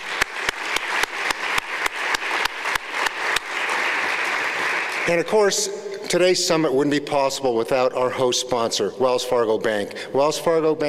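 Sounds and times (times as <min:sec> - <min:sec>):
audience applause: 0:00.0 - 0:05.4
speech: 0:05.1 - 0:10.8.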